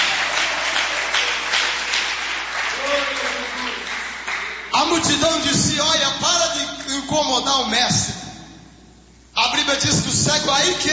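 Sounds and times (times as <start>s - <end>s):
audience clapping: 0.0s - 4.9s
speech: 5.0s - 8.2s, 9.5s - 10.9s.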